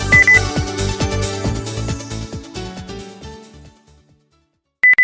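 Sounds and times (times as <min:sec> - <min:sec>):
pop beep: 0:00.1 - 0:00.4, 0:04.9 - 0:05.0.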